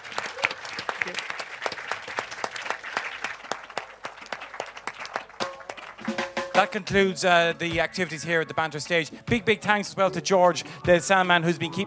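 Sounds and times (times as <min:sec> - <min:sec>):
audience applause: 0:00.0 - 0:07.0
speech: 0:01.0 - 0:01.3, 0:06.1 - 0:11.8.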